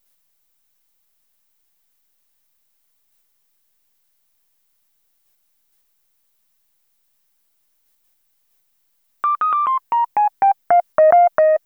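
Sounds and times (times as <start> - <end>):
electro lounge riff: 9.2 - 11.6.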